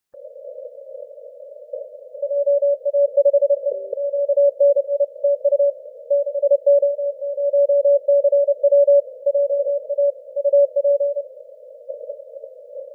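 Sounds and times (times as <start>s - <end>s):
30m band continuous wave morse code tones: 2.2s - 11.2s.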